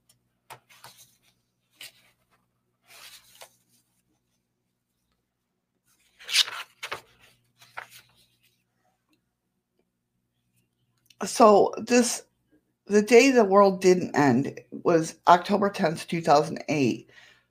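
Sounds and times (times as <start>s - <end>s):
printed paper sheets rustling: 0.5s - 4.4s, 5.9s - 8.6s
speech: 11.2s - 12.3s, 12.9s - 17.2s.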